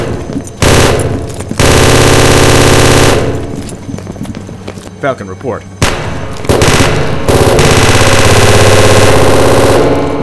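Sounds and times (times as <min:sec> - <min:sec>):
automatic gunfire exchanged with harbor personnel: 0:00.6 - 0:03.5, 0:05.8 - 0:10.2
speech: 0:05.0 - 0:05.8.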